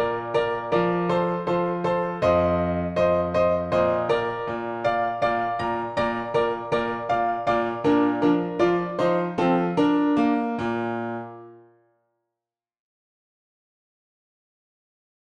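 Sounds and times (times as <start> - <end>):
dance music on a PianoTeq Bechstein piano: 0.0 - 11.6.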